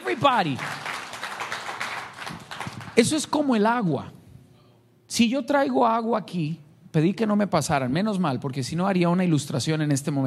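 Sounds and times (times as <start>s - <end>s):
audience applause: 0.0s - 3.2s
speech: 0.2s - 0.8s, 3.0s - 4.2s, 5.1s - 10.2s.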